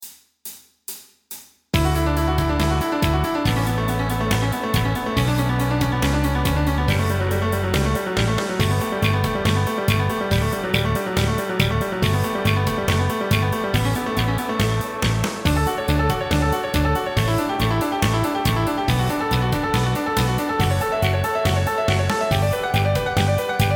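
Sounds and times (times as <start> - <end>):
backing track: 1.8 - 23.7.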